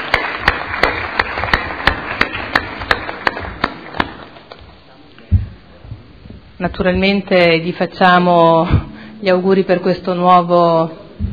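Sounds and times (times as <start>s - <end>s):
applause welcoming a council member: 0.0s - 4.2s
speech: 6.6s - 11.0s.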